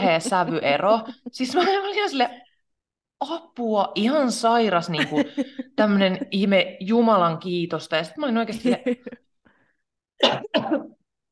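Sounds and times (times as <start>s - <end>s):
speech: 0.0s - 2.4s, 3.2s - 9.2s, 10.2s - 11.0s
choking coughing fit: 10.2s - 11.0s.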